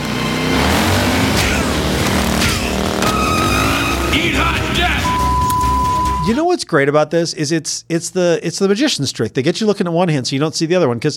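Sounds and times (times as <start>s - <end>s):
motorcycle engine revving: 0.0s - 4.4s
high-pitched screeches: 0.2s - 5.2s
speech: 6.3s - 11.1s.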